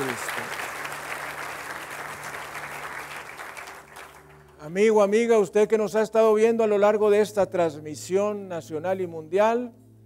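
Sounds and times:
audience applause: 0:00.0 - 0:04.5
speech: 0:04.6 - 0:09.8.

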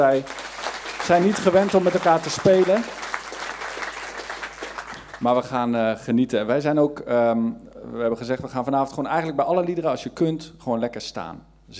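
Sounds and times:
speech: 0:00.0 - 0:00.5, 0:01.1 - 0:03.0, 0:05.2 - 0:11.7
audience applause for the band: 0:00.0 - 0:05.4.

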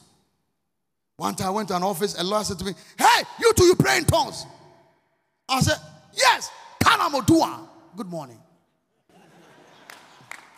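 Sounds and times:
speech: 0:01.2 - 0:04.6, 0:05.5 - 0:08.4
laughter: 0:08.9 - 0:10.5
audience clapping: 0:09.4 - 0:10.5.

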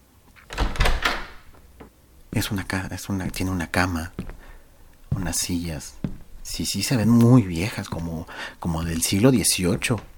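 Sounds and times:
door of a room opening: 0:00.4 - 0:01.6
speech: 0:02.4 - 0:04.3, 0:05.2 - 0:10.1.

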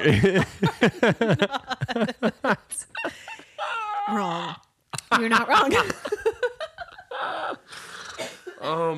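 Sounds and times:
speech: 0:00.0 - 0:02.8, 0:05.2 - 0:06.0
laughter: 0:00.0 - 0:03.8, 0:05.0 - 0:07.7
strained breathing: 0:07.6 - 0:08.3
person coughing fit: 0:07.8 - 0:08.8.

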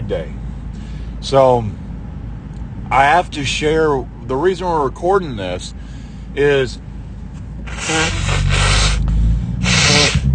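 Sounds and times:
speech: 0:00.1 - 0:00.4, 0:01.2 - 0:01.8, 0:02.9 - 0:06.8
person blowing their nose: 0:07.7 - 0:10.3.

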